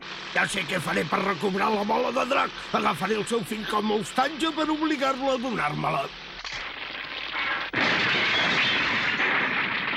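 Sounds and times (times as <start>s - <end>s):
speech: 0.4s - 6.2s
helicopter crashing: 7.5s - 9.9s.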